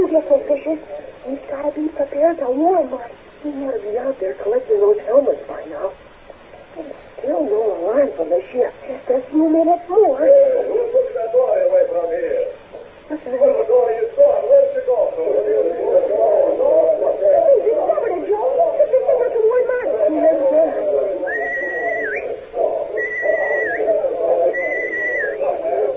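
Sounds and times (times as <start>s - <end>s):
continuous murmur of voices: 0.0s - 25.9s
high-pitched whistle signals: 21.3s - 22.3s, 23.0s - 23.9s, 24.5s - 25.4s.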